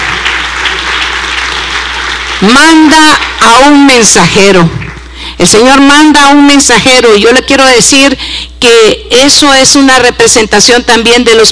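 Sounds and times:
audience applauding: 0.0s - 3.4s
speech: 2.4s - 4.8s, 5.4s - 11.5s.

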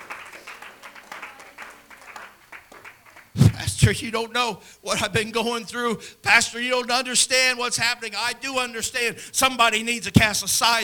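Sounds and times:
audience clapping hands: 0.0s - 4.0s
speech: 3.8s - 10.8s.

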